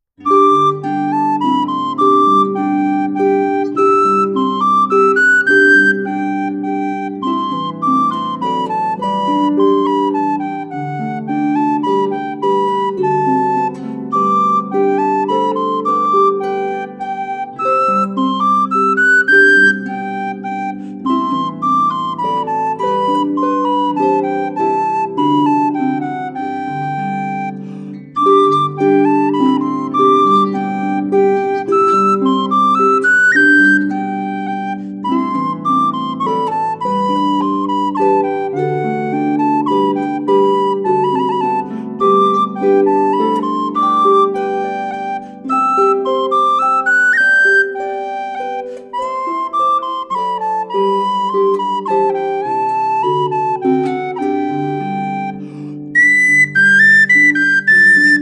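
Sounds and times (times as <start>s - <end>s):
minuet: 0.0s - 58.2s.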